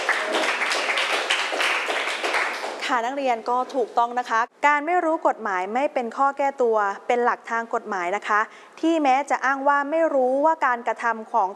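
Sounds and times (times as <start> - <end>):
students in a classroom clapping for a classmate: 0.0 - 2.9
speech: 2.9 - 11.5.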